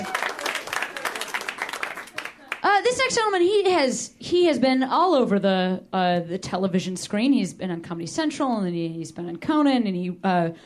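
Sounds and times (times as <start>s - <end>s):
audience clapping: 0.0s - 2.7s
speech: 2.8s - 10.6s.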